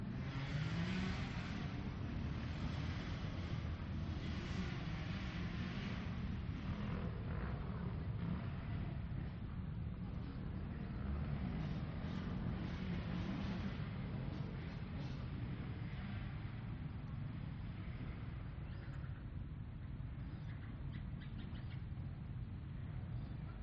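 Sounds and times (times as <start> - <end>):
motocross race motorcycles passing: 0.0 - 23.6.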